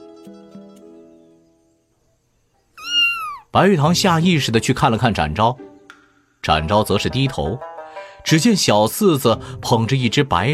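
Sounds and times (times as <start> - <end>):
cat meowing: 2.8 - 3.6
speech: 3.6 - 5.6, 6.4 - 10.5.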